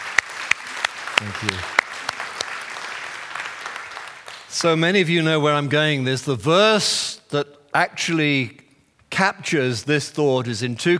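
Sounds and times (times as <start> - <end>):
audience applause: 0.0 - 4.5
speech: 1.2 - 1.8, 4.5 - 8.6, 9.2 - 10.9.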